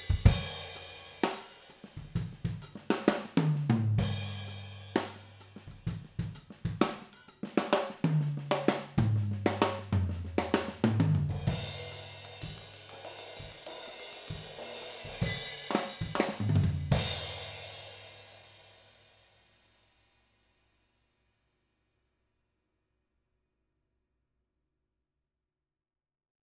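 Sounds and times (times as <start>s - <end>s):
drum recorded with spaced overhead microphones: 0.0s - 18.0s.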